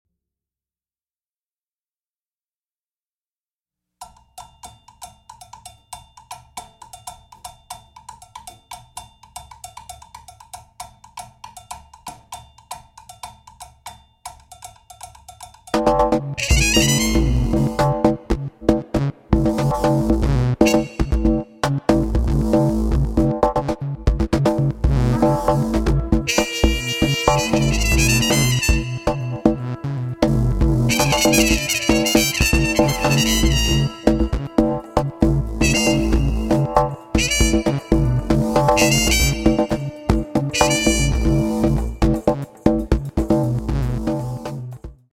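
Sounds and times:
upbeat music: 15.8s - 45.0s.

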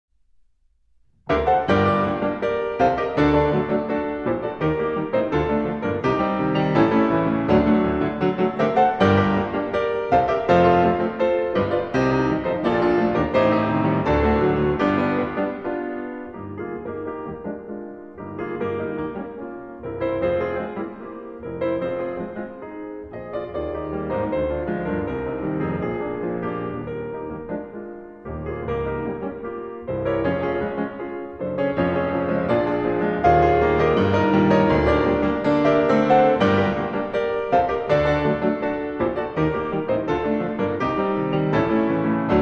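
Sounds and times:
piano ballade in G minor: 0.2s - 42.3s.

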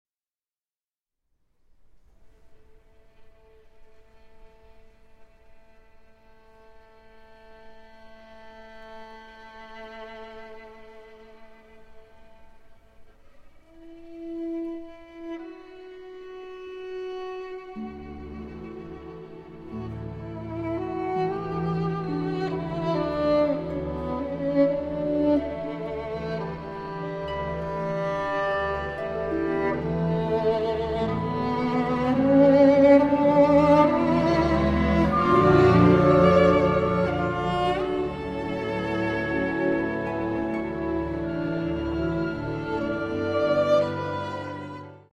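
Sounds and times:
violin concerto music: 2.3s - 45.1s.

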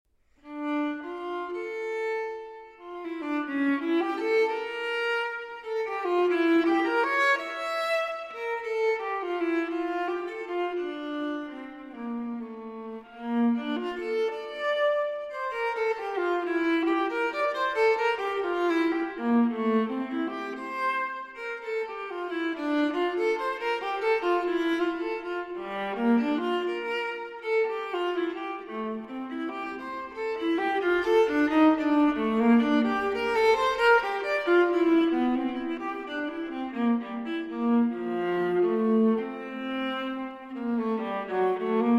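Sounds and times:
viola playing a prelude in D minor: 0.4s - 41.9s.

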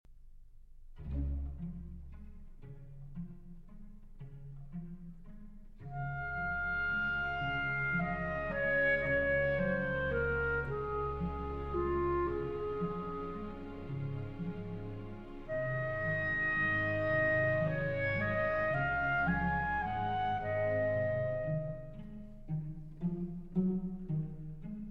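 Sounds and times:
clarinet concerto, andante pastorale movement: 5.8s - 24.4s.

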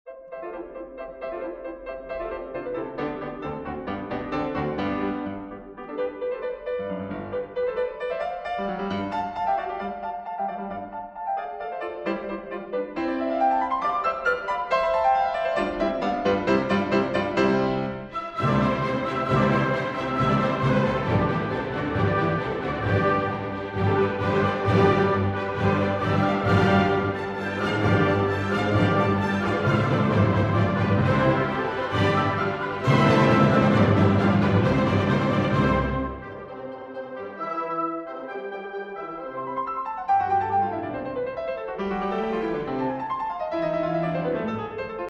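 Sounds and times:
piano concerto rondo allegro scherzando: 0.1s - 45.0s.

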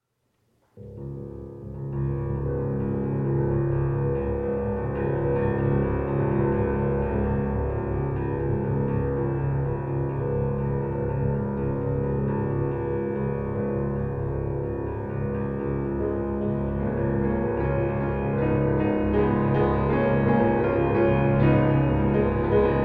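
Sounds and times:
live solo piano: 0.8s - 22.8s.

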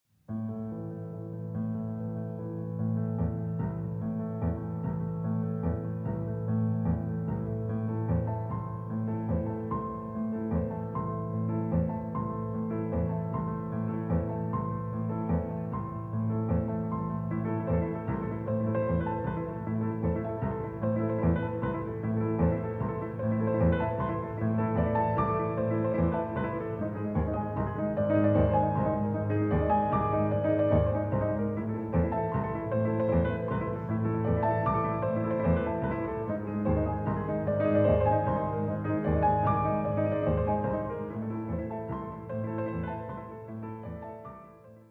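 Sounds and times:
piano duet: 0.2s - 44.8s.

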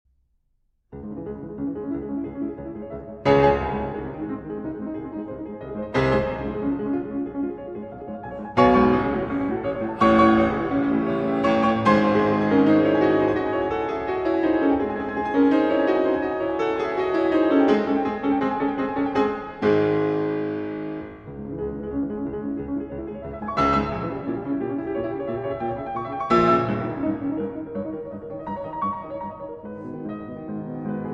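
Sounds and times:
piano sonata, fast agitated movement: 0.9s - 31.1s.

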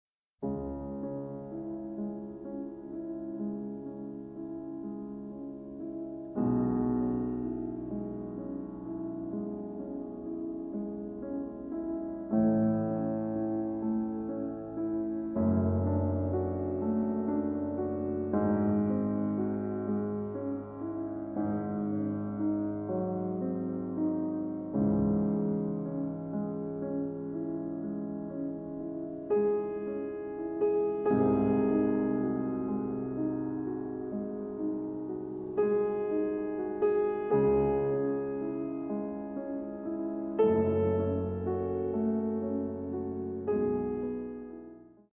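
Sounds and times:
slow piano sonata movement in C-sharp minor: 0.4s - 45.1s.

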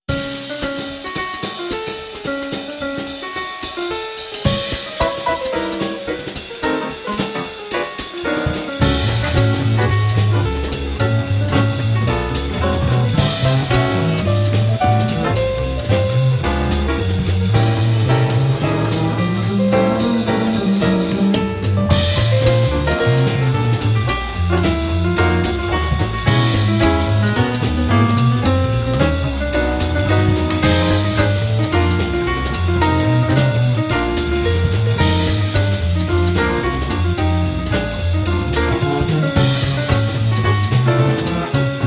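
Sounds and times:
jazz ensemble playing in F-sharp minor: 0.1s - 41.8s.

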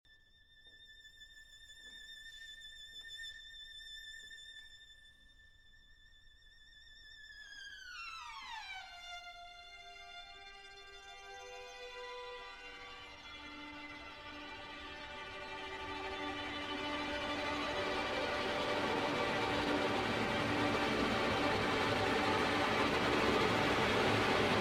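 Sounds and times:
symphony orchestra: 11.9s - 24.5s.

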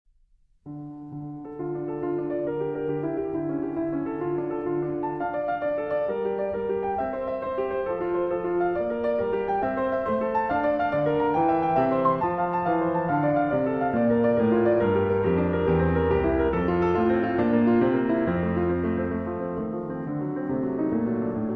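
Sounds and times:
prelude in D minor: 0.6s - 21.5s.

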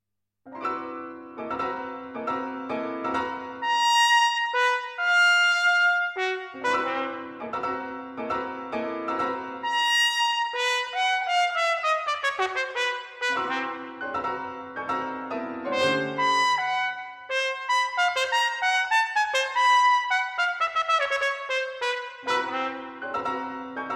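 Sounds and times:
piano: 0.5s - 23.9s
trumpet: 3.6s - 7.6s, 9.6s - 14.4s, 15.7s - 23.4s.

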